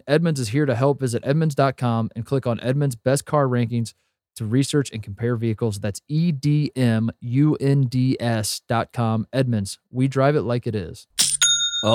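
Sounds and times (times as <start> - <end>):
speech: 0.0 - 11.2
sale notification chime from an online commerce platform: 11.2 - 11.9.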